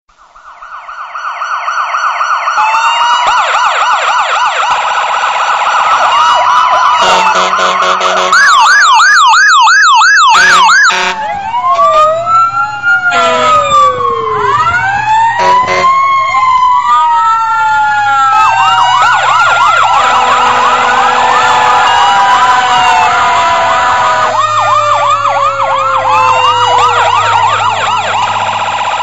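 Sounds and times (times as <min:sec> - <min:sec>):
police siren: 0:00.1 - 0:29.0.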